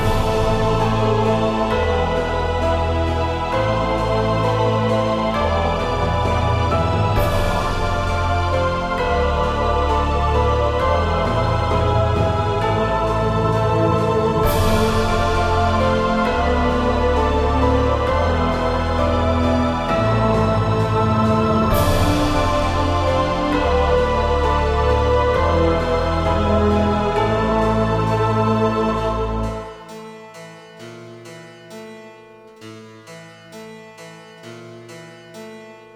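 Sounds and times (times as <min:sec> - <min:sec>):
piano: 0:00.0 - 0:35.9.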